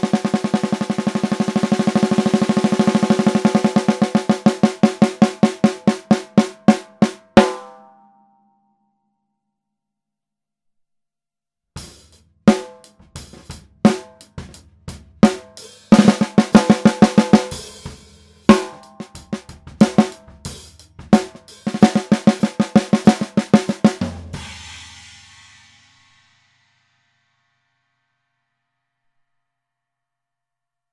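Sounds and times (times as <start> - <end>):
brass pork pie snare drum: 0.0 - 7.8, 11.8 - 25.7.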